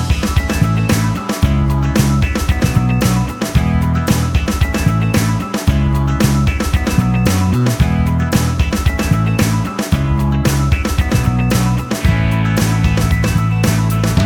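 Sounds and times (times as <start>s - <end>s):
cheerful background music: 0.0s - 14.2s.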